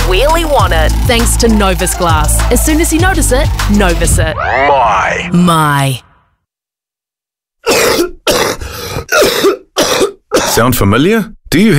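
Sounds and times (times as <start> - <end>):
speech: 0.2 - 6.1, 10.5 - 11.7
person coughing: 7.6 - 10.7.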